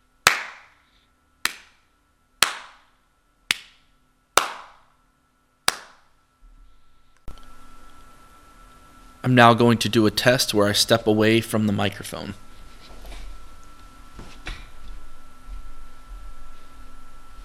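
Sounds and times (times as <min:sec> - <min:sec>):
hand claps recorded on dynamic microphone: 0:00.2 - 0:00.8, 0:01.4 - 0:01.8, 0:02.4 - 0:02.9, 0:03.5 - 0:03.8, 0:04.4 - 0:04.9, 0:05.7 - 0:06.1
speech: 0:09.2 - 0:12.4.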